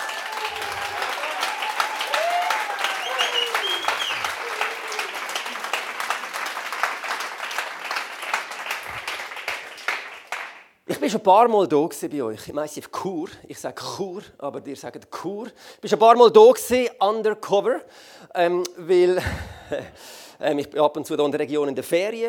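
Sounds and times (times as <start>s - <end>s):
audience applause: 0.0s - 10.7s
speech: 11.0s - 22.2s.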